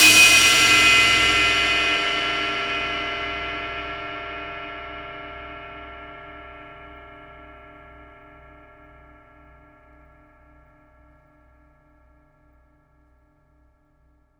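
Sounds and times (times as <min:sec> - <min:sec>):
impact drum hits: 0:00.0 - 0:01.9
cymbal hit: 0:00.0 - 0:03.1.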